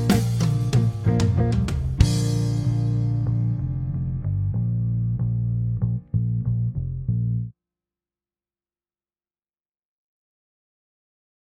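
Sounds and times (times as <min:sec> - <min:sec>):
blues music: 0:00.0 - 0:07.5.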